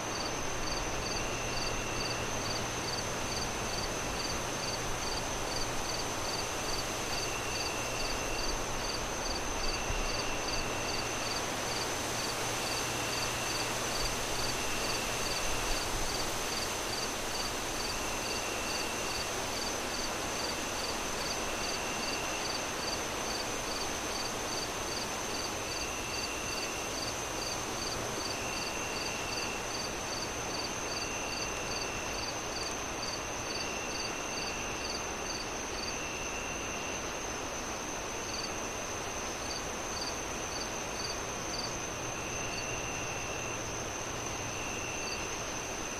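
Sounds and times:
crickets chirping: 0:00.0 - 0:45.9.

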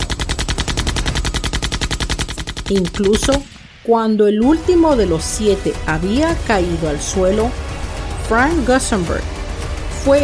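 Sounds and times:
Thompson submachine gun firing: 0:00.0 - 0:03.7
speech: 0:02.7 - 0:07.7, 0:08.3 - 0:09.3, 0:10.0 - 0:10.2.

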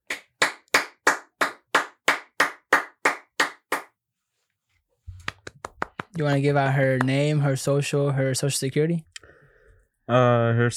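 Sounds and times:
single person clapping: 0:00.0 - 0:04.0, 0:05.2 - 0:06.3
speech: 0:06.2 - 0:09.1, 0:10.1 - 0:10.7.

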